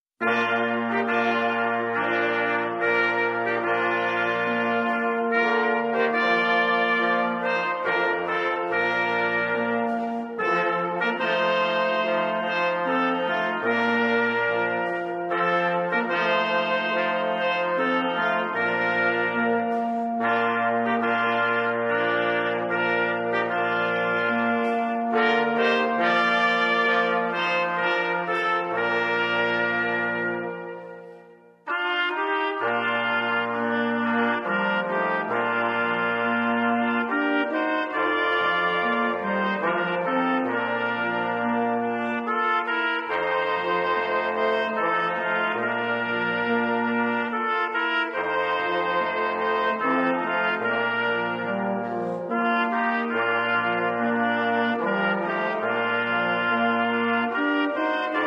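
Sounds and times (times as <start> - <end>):
music: 0.0 - 58.2.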